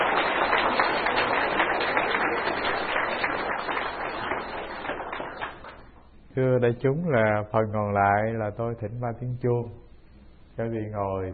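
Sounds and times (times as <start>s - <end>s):
audience applause: 0.0s - 5.9s
speech: 6.4s - 9.8s, 10.6s - 11.3s.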